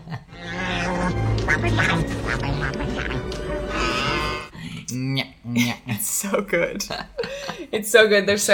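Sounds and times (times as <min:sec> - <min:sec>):
Tauntaun creature call sound effect: 0:00.3 - 0:04.5
speech: 0:01.6 - 0:03.6, 0:04.9 - 0:08.5.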